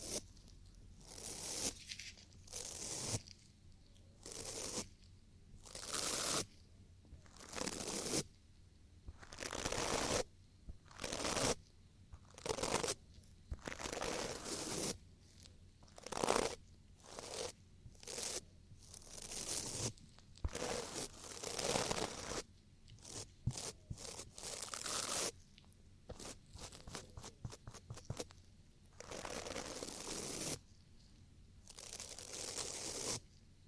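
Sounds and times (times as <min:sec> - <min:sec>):
crunchy scratching of ear cleaning: 0:00.0 - 0:03.5, 0:05.6 - 0:06.5, 0:07.2 - 0:08.3, 0:09.1 - 0:11.6, 0:12.2 - 0:28.4, 0:29.0 - 0:33.4
faint low hum: 0:00.0 - 0:05.7, 0:08.2 - 0:14.4, 0:16.6 - 0:29.8, 0:30.6 - 0:32.2.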